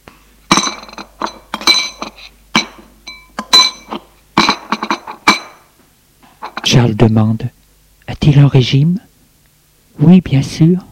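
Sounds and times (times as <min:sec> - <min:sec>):
lunch dishes and glassware clinking on a tray: 0:00.5 - 0:05.7, 0:06.4 - 0:06.8
speech: 0:06.8 - 0:09.1, 0:10.0 - 0:10.9.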